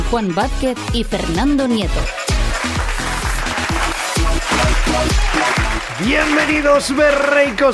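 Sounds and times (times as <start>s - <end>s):
speech: 0.1s - 2.2s, 4.9s - 7.7s
audience applause: 2.2s - 7.7s.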